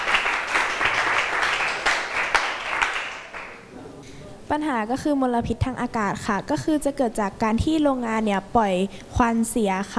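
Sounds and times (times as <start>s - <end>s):
classroom applause for classmates: 0.0s - 3.6s
speech: 4.5s - 9.9s.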